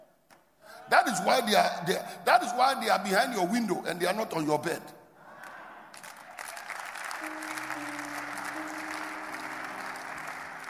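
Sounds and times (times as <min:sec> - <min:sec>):
speech: 0:01.0 - 0:05.0
audience clapping: 0:05.4 - 0:10.6.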